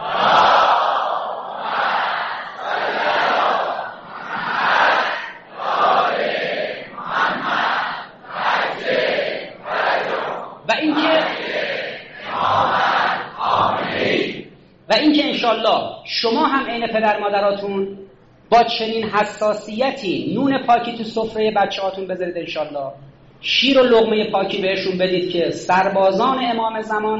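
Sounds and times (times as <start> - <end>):
large crowd chanting a blessing in unison: 0.0 - 14.6
speech: 15.7 - 27.1.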